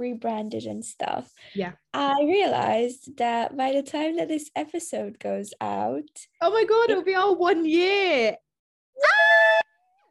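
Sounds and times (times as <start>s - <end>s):
speech: 0.0s - 8.4s
person screaming: 9.0s - 9.7s.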